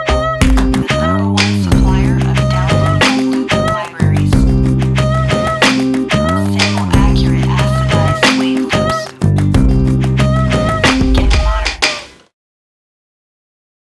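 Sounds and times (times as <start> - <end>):
urban guitar loops: 0.0 - 12.0.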